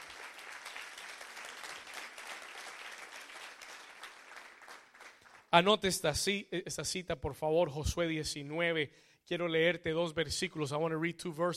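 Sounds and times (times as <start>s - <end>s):
audience hand clapping: 0.0s - 5.5s
speech: 5.5s - 11.5s.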